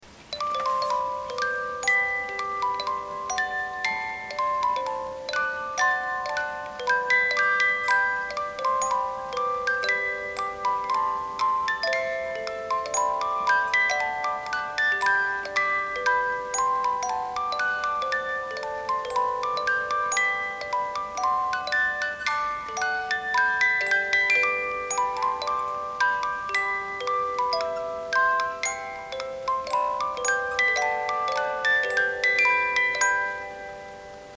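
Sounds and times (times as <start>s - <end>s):
36-tooth music box melody: 0.0s - 34.3s.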